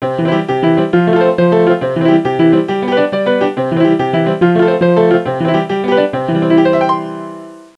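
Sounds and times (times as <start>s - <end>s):
piano: 0.0s - 7.7s.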